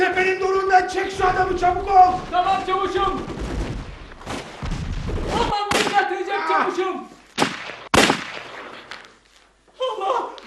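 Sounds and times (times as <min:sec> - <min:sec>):
rustling: 0:00.0 - 0:05.6, 0:07.0 - 0:09.8
speech: 0:00.8 - 0:03.5
gunshot in an audio drama: 0:01.2 - 0:06.1, 0:07.4 - 0:08.7.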